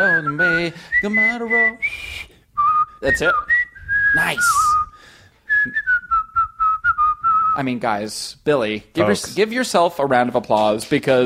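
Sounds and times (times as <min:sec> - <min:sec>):
speech: 0:00.0 - 0:02.3, 0:03.0 - 0:03.5, 0:04.1 - 0:04.8, 0:05.6 - 0:05.8, 0:07.6 - 0:11.2
person whistling: 0:00.0 - 0:07.6.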